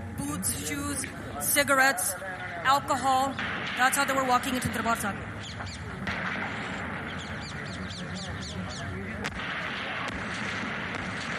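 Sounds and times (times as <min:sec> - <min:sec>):
speech: 0:00.4 - 0:06.0
bombs exploding: 0:03.3 - 0:08.2, 0:09.1 - 0:11.3.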